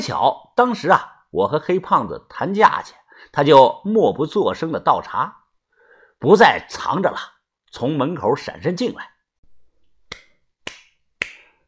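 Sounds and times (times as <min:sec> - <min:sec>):
speech: 0:00.0 - 0:05.4, 0:06.2 - 0:09.1
hands clapping: 0:10.1 - 0:11.6.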